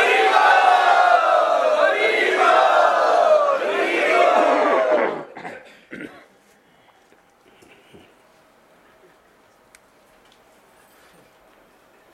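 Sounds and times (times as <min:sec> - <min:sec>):
crowd cheering and shouting in welcome at a devotee gathering: 0:00.0 - 0:05.4.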